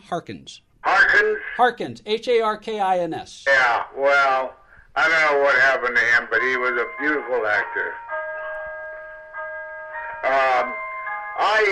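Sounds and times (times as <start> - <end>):
speech: 0.1 - 8.0, 11.5 - 11.6
clock chiming: 5.6 - 11.6.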